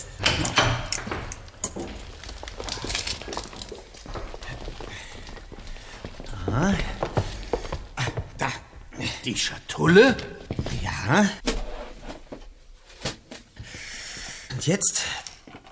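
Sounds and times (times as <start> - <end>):
door being opened: 0.0 - 2.2
footsteps: 0.0 - 14.6
speech: 9.2 - 10.4, 11.1 - 11.5, 14.6 - 15.2.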